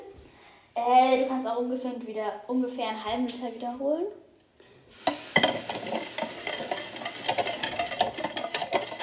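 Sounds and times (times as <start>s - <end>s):
speech: 0.8s - 4.2s
stirring lemon juice, water and sugar: 5.1s - 9.0s.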